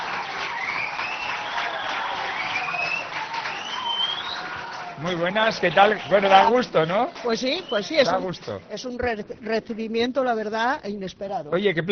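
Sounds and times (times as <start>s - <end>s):
audience applause: 0.0s - 8.0s
speech: 5.0s - 11.9s.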